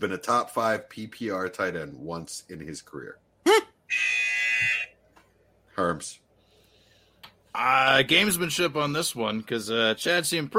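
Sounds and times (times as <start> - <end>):
speech: 0.0 - 3.2, 5.8 - 6.2, 7.6 - 10.5
quiz game buzzer: 3.9 - 4.9.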